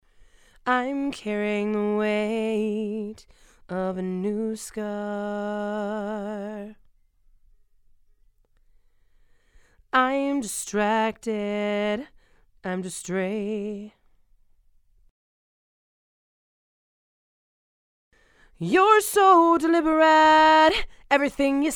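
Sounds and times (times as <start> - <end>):
female vocals: 0.6 - 6.9, 9.9 - 14.0, 18.6 - 21.7.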